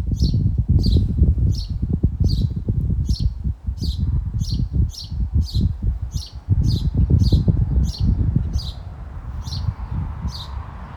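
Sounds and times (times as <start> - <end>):
Caatinga cacholote Pseudoseisura cristata: 0.1 - 10.6.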